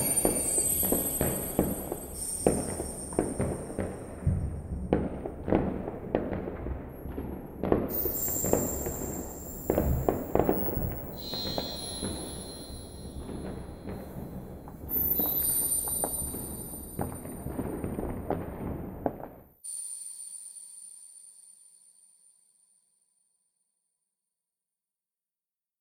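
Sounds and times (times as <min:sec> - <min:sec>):
fireworks: 0:00.0 - 0:19.5.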